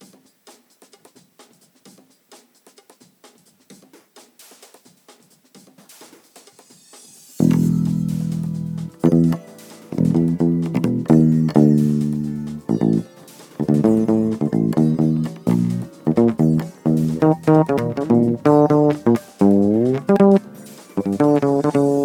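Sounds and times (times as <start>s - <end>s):
bass: 7.4s - 22.0s.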